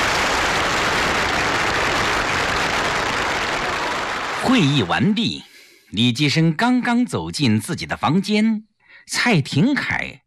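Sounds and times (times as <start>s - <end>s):
warm applause from an audience: 0.0s - 5.4s
speech: 4.5s - 10.2s.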